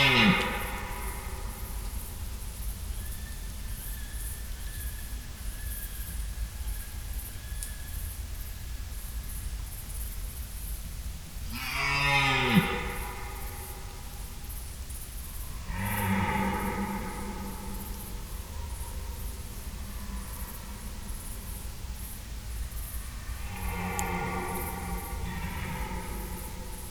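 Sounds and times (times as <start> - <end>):
red deer stag roaring: 0.0 - 1.7, 11.6 - 13.8, 15.6 - 18.8, 23.4 - 26.9
background hiss: 0.0 - 26.9.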